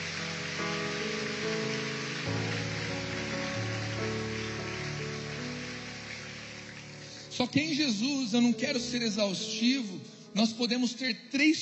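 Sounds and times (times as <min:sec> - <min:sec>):
audience applause: 0:00.0 - 0:08.0
speech: 0:07.4 - 0:11.6.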